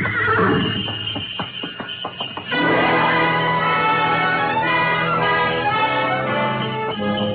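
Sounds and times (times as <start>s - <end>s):
horse whinnying: 0.0s - 0.8s
jangle of sleigh bells: 0.0s - 7.3s
sleigh runners squeaking on snow: 0.0s - 7.3s
soft pad of hooves: 0.0s - 7.3s.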